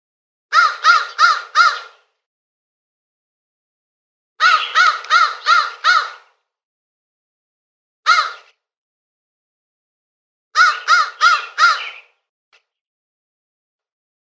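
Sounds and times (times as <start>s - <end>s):
crow uttering rasping caws: 0.5s - 2.0s, 4.4s - 6.4s, 8.1s - 8.5s, 10.6s - 12.1s.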